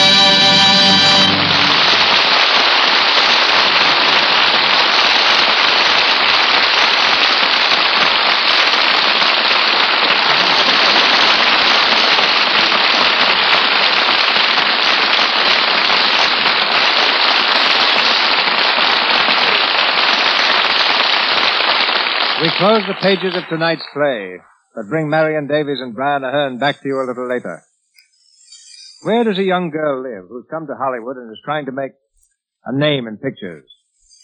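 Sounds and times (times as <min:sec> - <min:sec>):
rain: 0:00.2 - 0:23.7
speech: 0:22.6 - 0:27.7, 0:29.0 - 0:32.0, 0:32.6 - 0:33.8.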